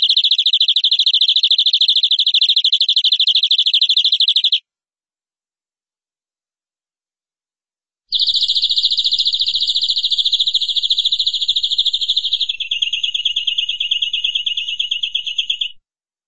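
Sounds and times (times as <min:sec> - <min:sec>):
canary trill: 0:00.0 - 0:04.6, 0:08.1 - 0:15.8.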